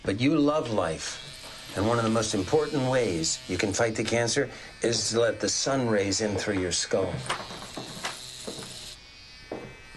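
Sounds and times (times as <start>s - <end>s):
speech: 0.1s - 7.6s
electric clippers shaving a boy's head for lice: 0.4s - 9.9s.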